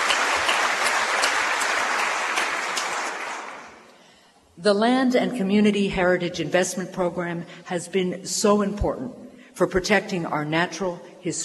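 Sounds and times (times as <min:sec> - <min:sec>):
sustained applause from a sizable crowd: 0:00.0 - 0:04.0
speech: 0:04.6 - 0:11.4.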